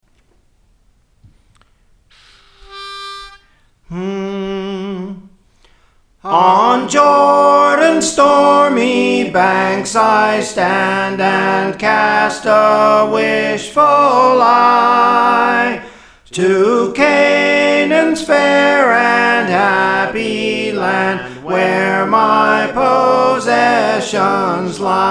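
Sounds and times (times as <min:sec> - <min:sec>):
soprano singing praise training: 0:06.2 - 0:25.1.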